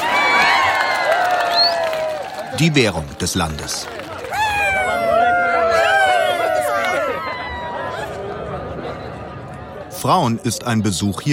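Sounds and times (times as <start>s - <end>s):
crowd of men cheering a wrestling winner: 0.0s - 3.0s, 4.1s - 9.0s
speech: 2.6s - 4.0s, 10.0s - 11.3s.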